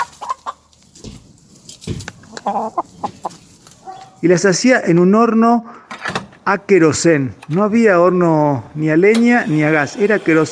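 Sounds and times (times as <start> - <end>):
hen clucking: 0.0 - 4.4
speech: 2.4 - 3.2, 4.2 - 5.8, 6.5 - 10.5.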